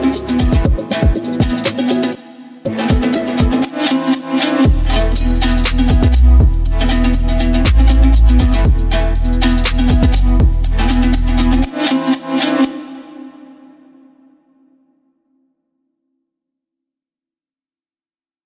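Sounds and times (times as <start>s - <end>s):
dombyra hip hop music: 0.0s - 13.8s.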